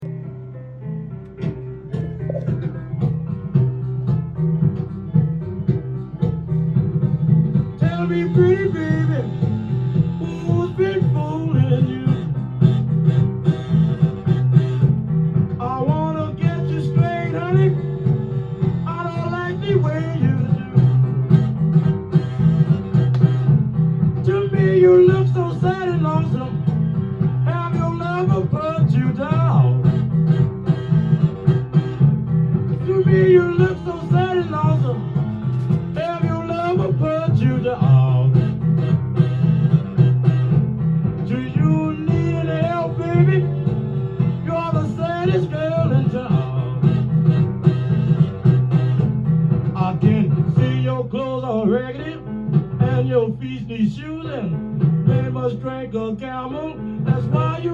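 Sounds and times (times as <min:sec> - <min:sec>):
New Orleans piano: 0:00.0 - 0:57.7.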